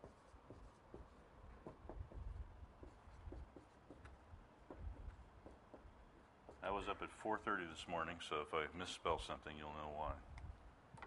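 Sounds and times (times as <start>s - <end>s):
writing words on a board: 0.0s - 6.8s
speech: 6.7s - 10.3s.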